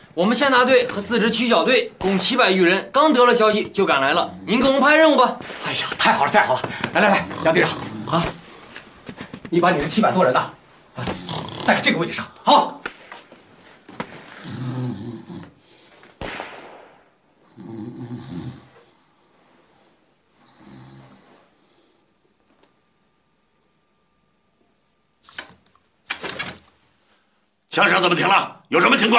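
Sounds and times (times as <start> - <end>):
speech: 0.2 - 8.4, 9.5 - 12.8, 27.8 - 29.1
man snoring while asleep: 6.8 - 8.5, 11.0 - 12.0, 14.3 - 15.6, 17.5 - 18.8, 20.4 - 21.5.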